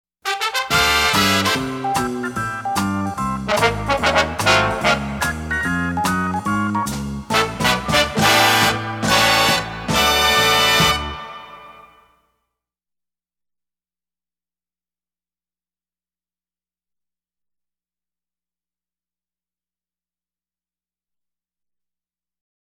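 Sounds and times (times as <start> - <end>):
fanfare: 0.2 - 6.1, 7.3 - 12.2.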